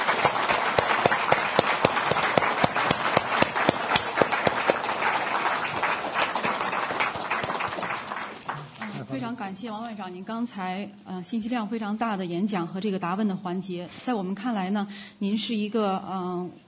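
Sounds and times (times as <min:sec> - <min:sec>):
audience applause after a foreign minister's address: 0:00.0 - 0:09.0
speech: 0:09.5 - 0:16.6.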